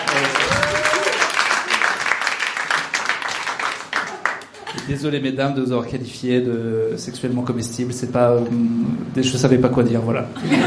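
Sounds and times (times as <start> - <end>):
audience applause: 0.0 - 4.7
speech: 4.9 - 10.6.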